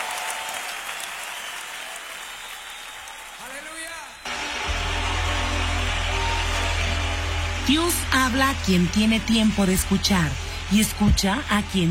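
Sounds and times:
loud crowd applause: 0:00.0 - 0:11.9
speech: 0:07.7 - 0:11.9.

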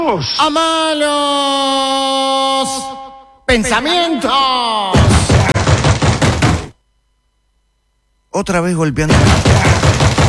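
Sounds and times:
speech: 0:00.1 - 0:05.4, 0:08.4 - 0:10.1
knocking on a door: 0:05.0 - 0:06.8, 0:09.1 - 0:10.2.

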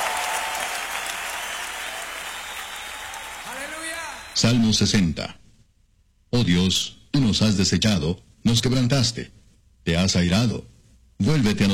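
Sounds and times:
audience applause: 0:00.0 - 0:04.4
speech: 0:04.4 - 0:05.4, 0:06.3 - 0:11.7.

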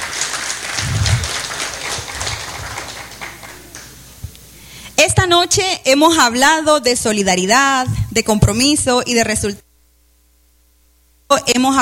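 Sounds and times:
warm audience applause: 0:00.0 - 0:04.2
speech: 0:05.0 - 0:09.6, 0:11.3 - 0:11.8.

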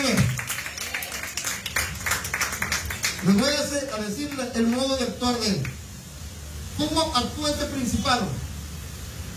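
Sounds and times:
church congregation clapping hands as praise to God: 0:00.0 - 0:05.8
speech: 0:03.2 - 0:05.8, 0:06.8 - 0:08.4.

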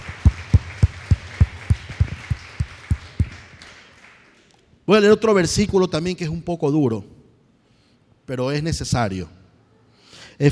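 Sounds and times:
congregation clapping in rhythm in a Spanish-language church service: 0:00.0 - 0:04.7
speech: 0:04.9 - 0:07.2, 0:08.3 - 0:09.4.

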